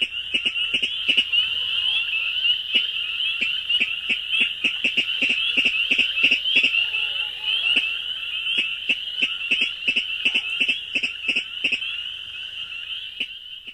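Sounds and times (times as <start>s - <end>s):
Virginia rail kdick calls: 0.0s - 12.0s
high-pitched insect-like buzzing chorus: 0.0s - 13.7s.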